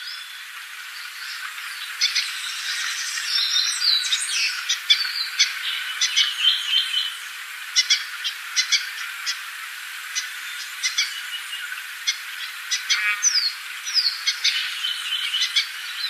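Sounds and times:
Yellow-bellied Siskin in Ecuador: 1.3 - 9.4, 10.1 - 16.0.

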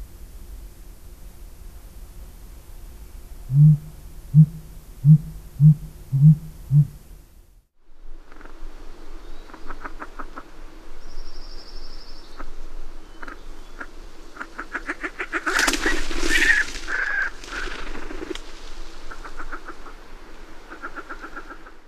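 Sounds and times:
Blue Grouse calling in North America: 3.5 - 7.0, 9.5 - 10.6, 12.4 - 21.8.

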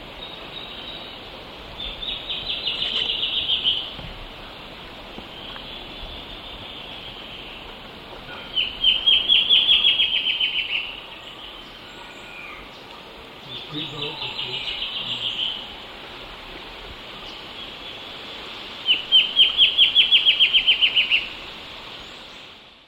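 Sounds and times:
Black-chinned Antbird calling in Eastern Lowlands of South America: 1.8 - 15.8, 18.8 - 21.5.

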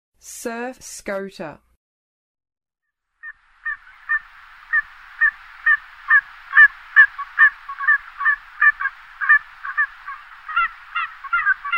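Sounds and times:
Surf Scoter calls: 3.2 - 11.7.

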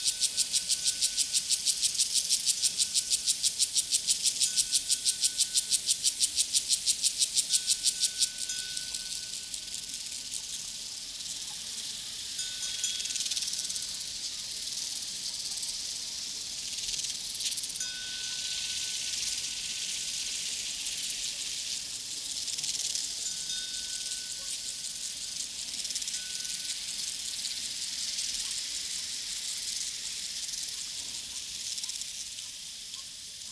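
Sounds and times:
crickets chirping on a prairie: 0.0 - 33.5
cowbells on a prairie: 4.1 - 9.9, 12.3 - 14.1, 17.8 - 20.8, 23.0 - 27.9.

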